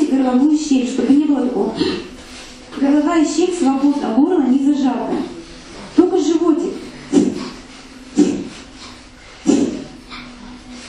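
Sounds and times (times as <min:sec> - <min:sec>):
speech: 0:00.2 - 0:02.1, 0:02.8 - 0:05.3
deep breathing: 0:06.9 - 0:10.0.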